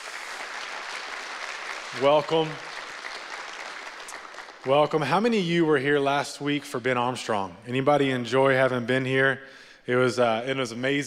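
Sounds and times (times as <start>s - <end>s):
audience giving a hand clap: 0.0s - 5.4s
speech: 1.9s - 2.7s, 4.6s - 11.0s.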